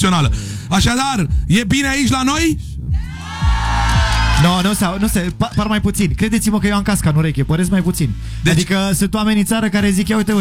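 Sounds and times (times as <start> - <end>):
speech: 0.0 - 2.7, 4.4 - 10.3
large audience at a live event shouting and cheering: 2.9 - 5.5.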